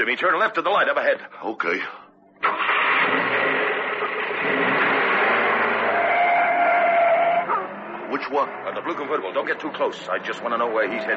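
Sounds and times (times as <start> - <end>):
speech: 0.0 - 3.2, 8.1 - 11.1
taxi cab engine starting: 2.4 - 11.1.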